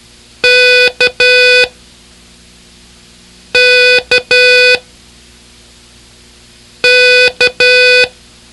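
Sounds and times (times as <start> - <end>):
Morse code letter K beeps: 0.4 - 1.7, 3.6 - 4.8, 6.8 - 8.1.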